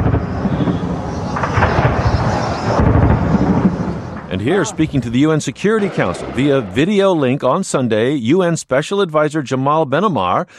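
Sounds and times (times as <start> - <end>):
gunfire during street fighting: 0.0 - 7.3
speech: 4.4 - 10.5.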